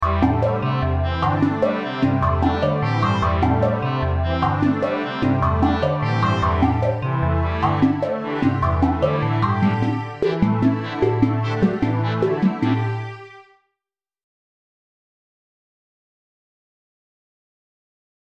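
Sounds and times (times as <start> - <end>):
technology music: 0.0 - 13.2.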